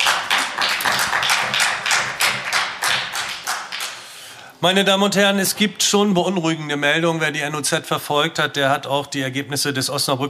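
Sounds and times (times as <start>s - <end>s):
audience applause: 0.0s - 4.1s
speech: 4.6s - 10.2s.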